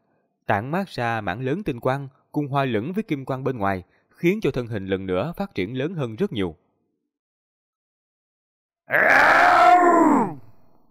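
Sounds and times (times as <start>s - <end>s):
speech: 0.5s - 6.6s, 8.9s - 10.2s
giant ape's low growl: 8.9s - 10.4s.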